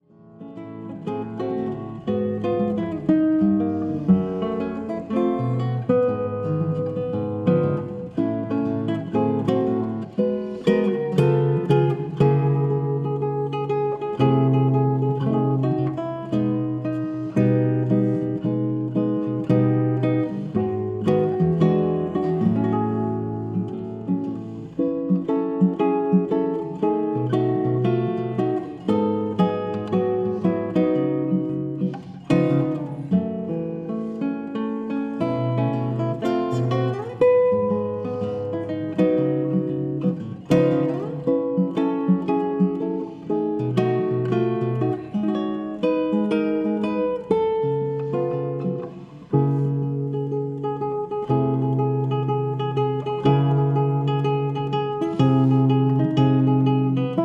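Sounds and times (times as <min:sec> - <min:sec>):
acoustic guitar: 0:00.0 - 0:57.2.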